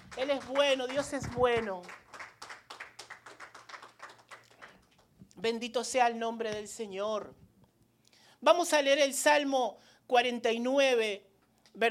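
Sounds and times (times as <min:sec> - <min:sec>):
audience clapping in a steady quick rhythm: 0:00.0 - 0:05.1
speech: 0:00.2 - 0:02.0, 0:05.4 - 0:07.4, 0:08.4 - 0:11.8.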